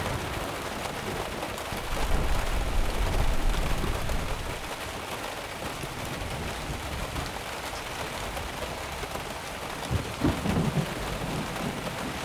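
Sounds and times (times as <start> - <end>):
severe thunderstorm: 0.0 - 12.2.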